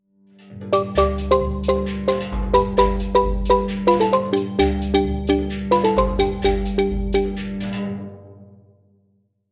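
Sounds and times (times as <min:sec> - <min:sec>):
hard dance music: 0:00.8 - 0:07.4.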